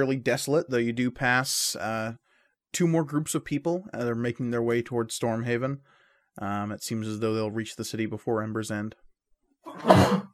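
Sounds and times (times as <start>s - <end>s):
speech: 0.0s - 9.0s, 9.6s - 10.3s
sneeze: 9.7s - 10.3s.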